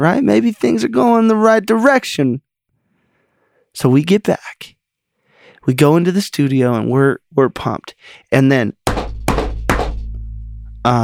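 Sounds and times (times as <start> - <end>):
speech: 0.0 - 2.4, 3.8 - 4.8, 5.6 - 8.8, 10.8 - 11.0
heavy knocks on a door: 8.9 - 10.3
low steady hum: 8.9 - 11.0.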